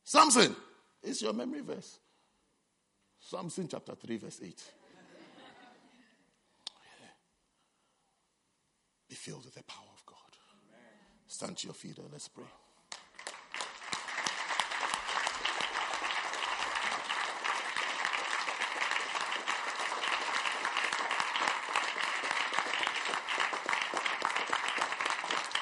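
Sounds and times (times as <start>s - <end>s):
speech: 0.1s - 2.0s, 3.2s - 4.8s, 9.2s - 9.9s, 11.3s - 12.6s
crowd clapping: 12.9s - 25.5s.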